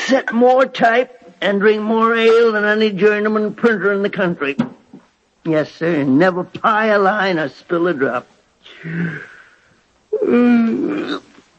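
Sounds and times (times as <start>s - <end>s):
speech: 0.1s - 4.8s, 5.4s - 9.3s, 10.2s - 11.3s
person yawning: 8.7s - 11.4s.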